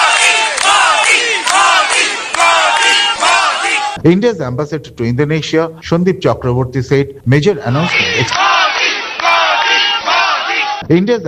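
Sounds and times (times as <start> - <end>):
Indian diaspora crowd chanting and shouting welcoming Prime Minister Modi in Jakarta: 0.0 - 4.0, 7.5 - 10.8
speech: 4.0 - 8.5, 10.9 - 11.2.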